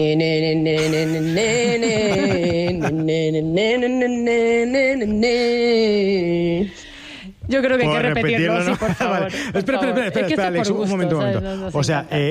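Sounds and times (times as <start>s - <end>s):
woman humming the chorus of a song: 0.0s - 6.6s
speech: 0.0s - 6.8s, 7.5s - 12.2s
laughter: 0.8s - 3.3s, 7.9s - 10.8s.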